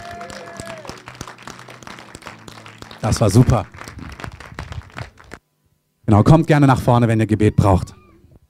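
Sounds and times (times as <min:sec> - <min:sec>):
audience applause: 0:00.0 - 0:05.4
speech: 0:03.0 - 0:03.8, 0:06.1 - 0:08.0.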